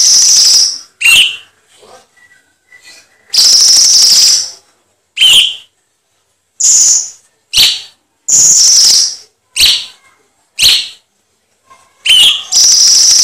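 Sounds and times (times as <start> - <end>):
cucak cungkok singing upslurred whistles: 0.0 - 1.4, 2.2 - 4.5, 5.2 - 5.7, 6.6 - 10.0, 12.1 - 13.2.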